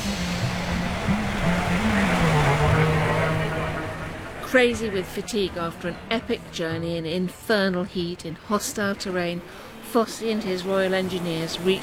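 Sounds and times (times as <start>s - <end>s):
Mastiff six-wheeled armoured vehicle engine droning on the road to Kajaki: 0.0s - 11.8s
speech: 4.5s - 11.8s.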